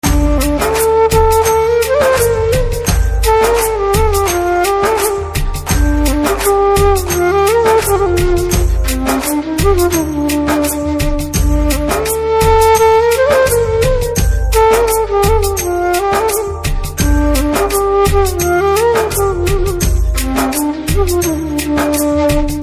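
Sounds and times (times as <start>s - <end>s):
flue background music: 0.0s - 22.6s.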